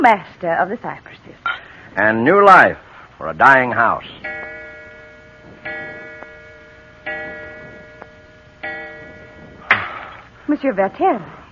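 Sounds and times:
speech: 0.0s - 4.3s, 10.5s - 11.4s
clock striking: 3.8s - 10.3s.

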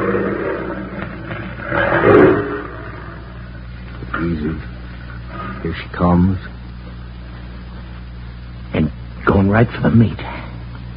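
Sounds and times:
wild big cat roaring: 0.0s - 3.5s
speech: 5.7s - 6.6s, 9.5s - 10.4s.

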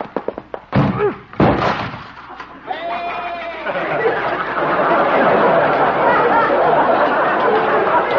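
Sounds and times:
door being smashed through: 0.7s - 2.3s
laughter: 2.3s - 8.1s.

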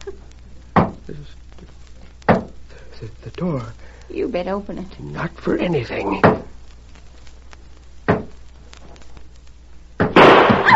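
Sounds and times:
speech: 1.1s - 1.7s, 3.0s - 6.5s
gunshot fired through a door: 10.0s - 10.7s.

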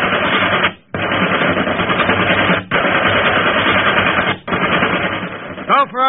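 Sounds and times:
rapid machine gun fire: 0.0s - 6.0s.

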